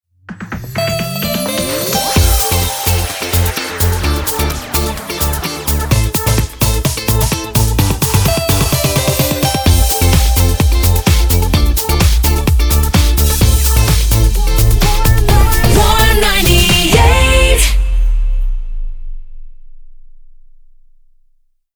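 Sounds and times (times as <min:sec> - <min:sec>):
128 bpm ramp jingle: 0:00.5 - 0:18.5.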